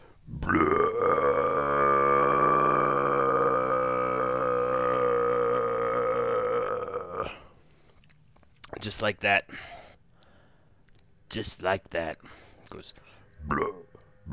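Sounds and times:
voice imitating a rumbling stomach: 0.3s - 7.5s, 13.4s - 14.3s
speech: 8.9s - 9.8s, 11.4s - 13.8s.

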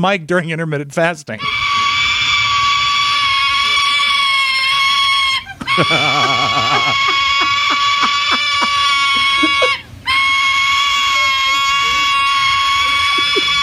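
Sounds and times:
speech: 0.0s - 1.7s, 5.8s - 7.3s
juvenile silver-crested cockatoo begging to be fed: 1.4s - 13.6s
laughter: 5.4s - 13.6s.

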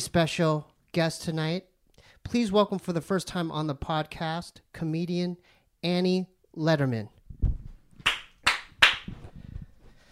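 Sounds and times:
speech: 0.0s - 7.2s
single hand clap: 8.0s - 9.2s.

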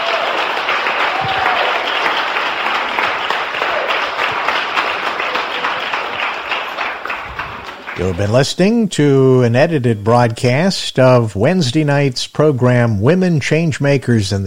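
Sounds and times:
audience applause: 0.0s - 8.4s
speech: 8.0s - 14.4s.

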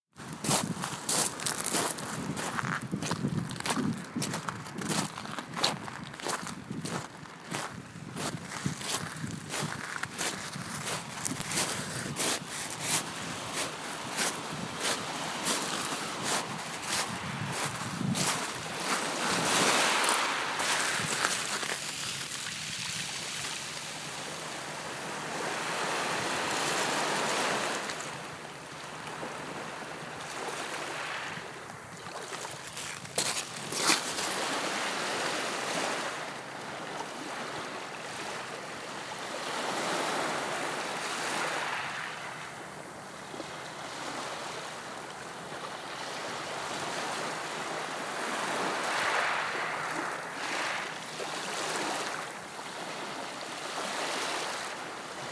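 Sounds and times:
walking on pebbles: 0.2s - 22.6s, 32.2s - 34.5s
gentle waves: 0.2s - 55.2s.

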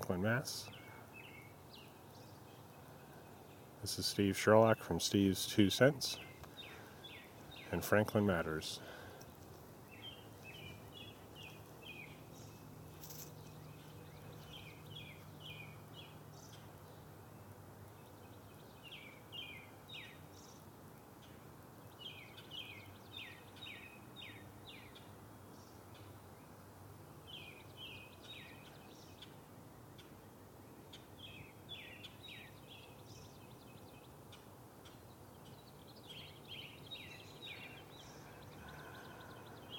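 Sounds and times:
birdsong in short bursts of high chirps: 0.0s - 39.7s
steady hiss: 0.0s - 39.7s
speech: 0.1s - 0.8s, 3.8s - 6.3s, 7.7s - 9.0s.

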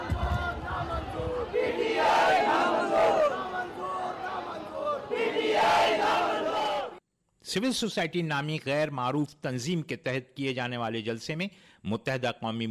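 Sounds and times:
crowd chanting slogans at a public rally in Sindh, Pakistan: 0.0s - 7.0s
speech: 7.6s - 12.6s.

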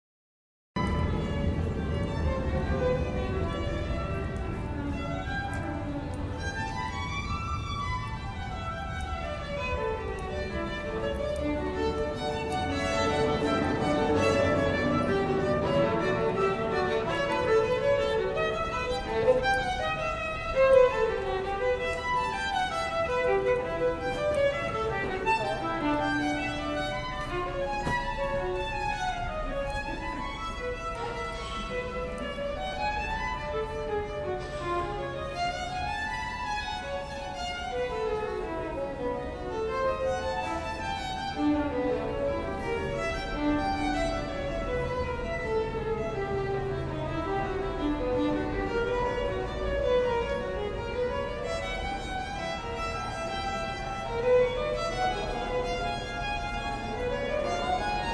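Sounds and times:
violin playing in 14th St station: 0.8s - 58.1s.

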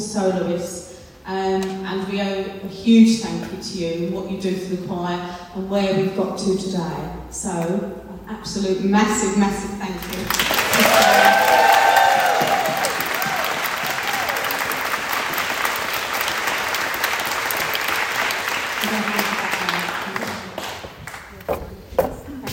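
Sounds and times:
speech: 0.1s - 11.7s
audience applauding: 10.0s - 21.4s
cheers: 10.3s - 19.3s.

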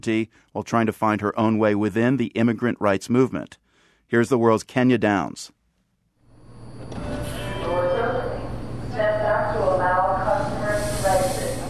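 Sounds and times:
speech: 0.0s - 5.6s
metro train riding: 6.4s - 11.6s.

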